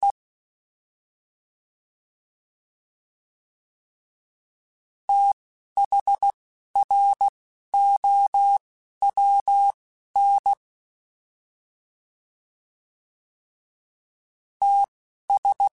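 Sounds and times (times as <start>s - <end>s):
fast CW Morse code groups: 5.1s - 10.6s, 14.6s - 15.7s.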